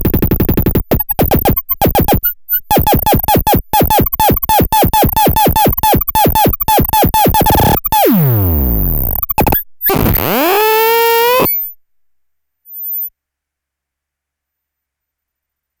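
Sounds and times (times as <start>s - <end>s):
Doepfer modular synthesizer: 0.0s - 11.8s.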